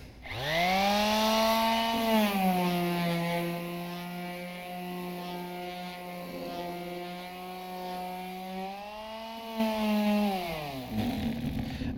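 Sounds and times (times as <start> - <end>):
power sander running: 0.0 - 11.7.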